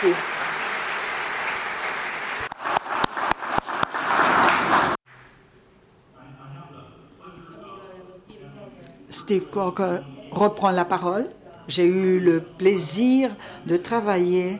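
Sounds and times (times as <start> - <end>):
speech: 0.0 - 0.3, 9.3 - 14.5
audience applause: 0.0 - 5.0.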